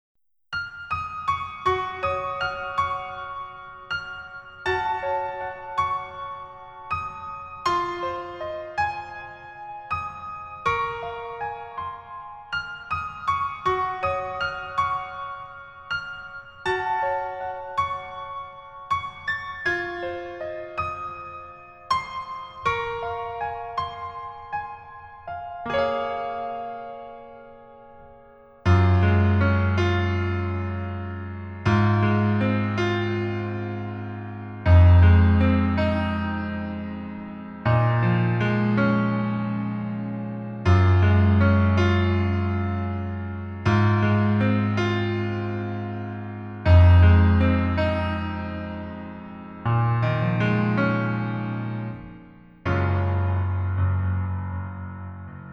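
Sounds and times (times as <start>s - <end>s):
piano version: 0.0s - 55.5s.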